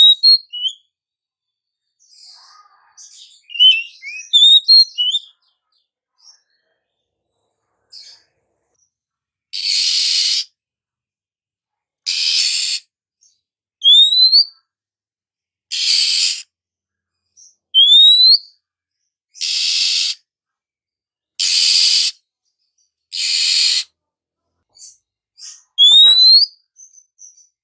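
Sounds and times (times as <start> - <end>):
female Oriental magpie-robin calling with rising whistled slurs: 0.0 - 0.8, 3.0 - 5.3, 9.6 - 10.5, 12.1 - 12.8, 13.8 - 14.5, 15.7 - 16.4, 17.4 - 18.6, 19.4 - 20.2, 21.4 - 22.2, 23.1 - 23.9, 24.8 - 27.6.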